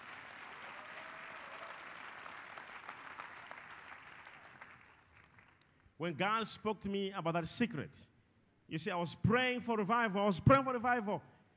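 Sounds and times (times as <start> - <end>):
audience clapping: 0.0 - 5.8
speech: 6.0 - 8.1, 8.7 - 11.3.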